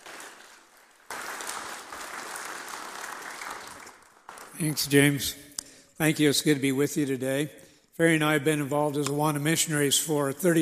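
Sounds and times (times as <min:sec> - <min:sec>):
round of applause: 0:00.0 - 0:05.3
speech: 0:04.6 - 0:05.4, 0:06.0 - 0:10.5.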